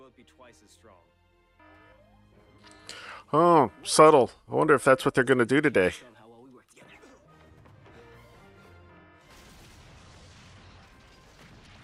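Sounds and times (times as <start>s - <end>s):
speech: 0.2s - 6.2s
building blowing up in an explosion: 9.3s - 11.8s.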